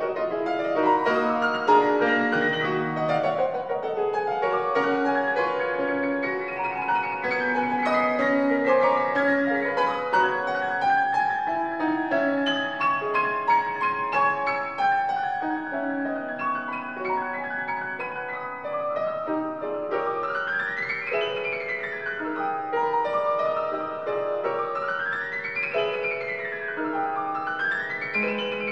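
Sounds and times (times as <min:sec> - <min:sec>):
piano: 0:00.0 - 0:28.6.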